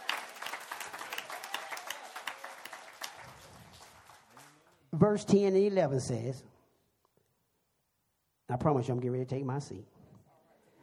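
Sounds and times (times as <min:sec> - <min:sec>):
audience clapping hands in praise: 0:00.0 - 0:04.9
speech: 0:05.0 - 0:06.5, 0:08.5 - 0:10.0.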